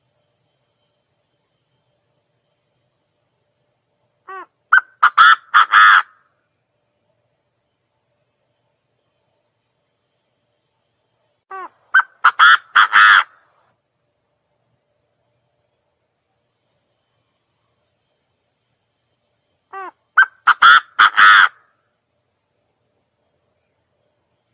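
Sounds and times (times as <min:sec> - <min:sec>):
partridge calling: 0:04.3 - 0:06.2, 0:11.5 - 0:13.4, 0:19.7 - 0:21.7.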